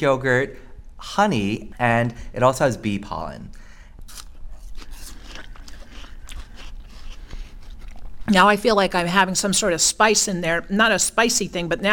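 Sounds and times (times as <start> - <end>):
speech: 0.0 - 3.6, 8.3 - 11.9
low hum: 0.0 - 11.9
crunchy chewing of superworms, grasshoppers and apple: 4.0 - 8.3.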